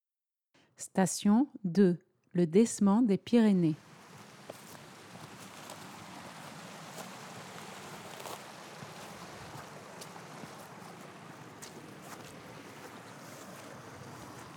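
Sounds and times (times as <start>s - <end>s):
speech: 0.8s - 3.9s
rushing water in a Pyrenees stream: 3.8s - 14.5s.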